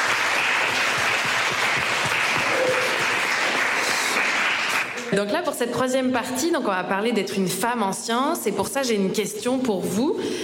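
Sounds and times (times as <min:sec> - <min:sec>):
crowd clapping: 0:00.0 - 0:05.2
speech: 0:05.1 - 0:10.4.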